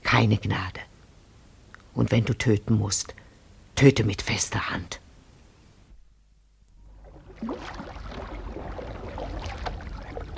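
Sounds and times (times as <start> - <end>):
speech: 0.2 - 0.8, 2.0 - 3.2, 3.8 - 5.0
canoe pushed out into river water: 6.8 - 10.3.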